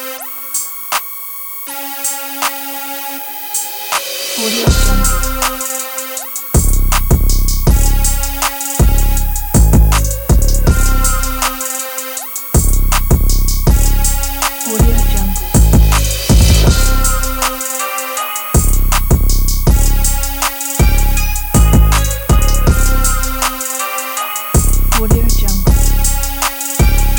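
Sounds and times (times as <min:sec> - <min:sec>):
aggressive dark crime trap hip hop: 0:00.0 - 0:27.1.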